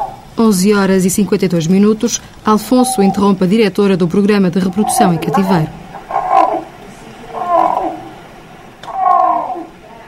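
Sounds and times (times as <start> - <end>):
male Iberian lynx yowling mating call: 0.0 - 0.4, 2.5 - 3.5, 4.4 - 9.8
speech: 0.4 - 5.8.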